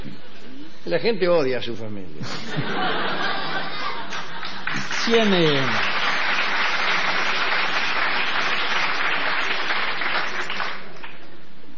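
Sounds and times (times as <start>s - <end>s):
speech: 0.9s - 3.3s, 5.0s - 6.0s
laughter: 2.2s - 5.0s
crowd applauding: 3.6s - 11.4s.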